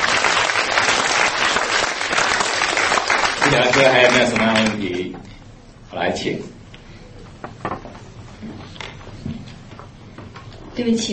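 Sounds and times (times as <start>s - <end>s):
audience applause: 0.0s - 5.0s
speech: 3.5s - 5.3s, 5.9s - 6.6s, 10.8s - 11.1s.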